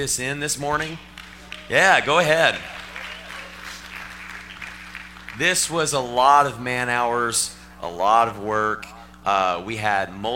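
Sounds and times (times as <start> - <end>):
speech: 0.0 - 2.8, 5.4 - 10.3
low hum: 0.0 - 10.3
audience applause: 1.1 - 5.8.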